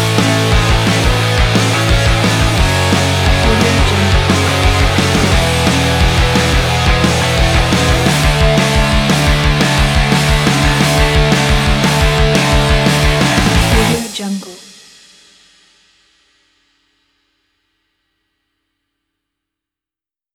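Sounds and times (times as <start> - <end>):
uplifting pop punk: 0.0 - 14.3.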